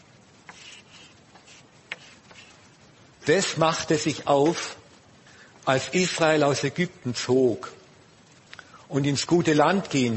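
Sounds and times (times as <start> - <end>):
pen or pencil scratching while writing: 0.4 - 2.6
speech: 3.2 - 4.8, 5.6 - 7.8, 8.9 - 10.1.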